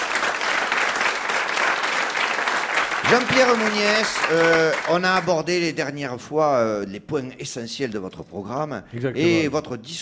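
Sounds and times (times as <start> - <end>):
studio audience applauding a guest: 0.0 - 5.4
speech: 3.1 - 10.0.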